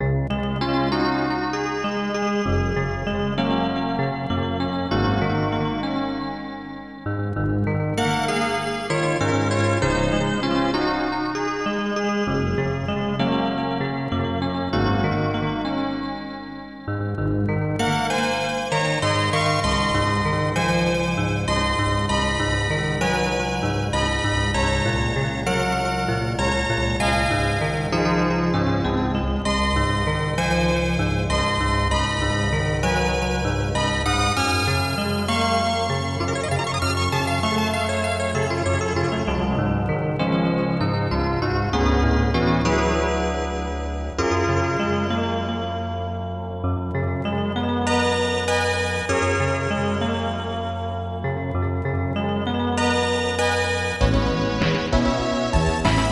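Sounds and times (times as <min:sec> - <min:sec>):
music: 0:00.0 - 0:56.0.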